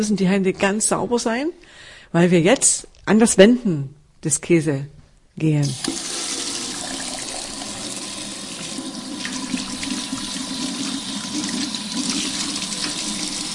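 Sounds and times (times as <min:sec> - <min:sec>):
speech: 0:00.0 - 0:06.1
water running from a brass tap fed by two enamel buckets: 0:05.7 - 0:13.5.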